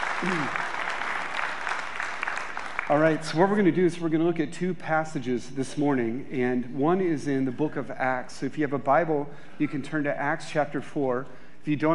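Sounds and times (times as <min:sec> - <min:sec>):
crowd applause: 0:00.0 - 0:03.3
speech: 0:00.2 - 0:00.7, 0:02.9 - 0:11.9.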